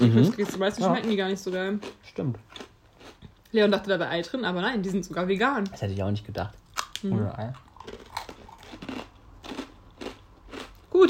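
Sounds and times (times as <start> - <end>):
speech: 0.0 - 8.0
crunching snacks while eating: 7.6 - 11.0.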